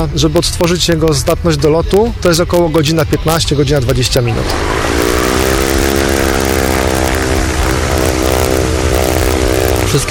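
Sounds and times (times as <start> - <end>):
speech: 0.0 - 5.4
electric airplane motor and propeller: 4.4 - 10.0.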